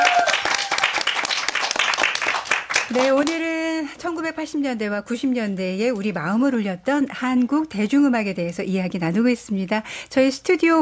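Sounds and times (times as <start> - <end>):
audience applause after live performance: 0.0 - 3.3
speech: 2.9 - 3.4, 4.0 - 10.8.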